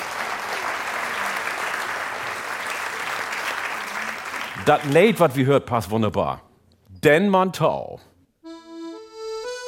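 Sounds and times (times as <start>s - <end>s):
audience applause: 0.0s - 5.2s
speech: 4.7s - 8.1s.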